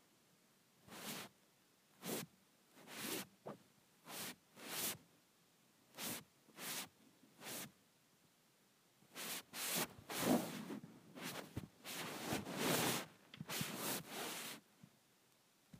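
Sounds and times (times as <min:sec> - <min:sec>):
phone sliding across sheets: 0:00.9 - 0:01.3, 0:02.0 - 0:03.3, 0:04.1 - 0:05.0, 0:09.1 - 0:14.6.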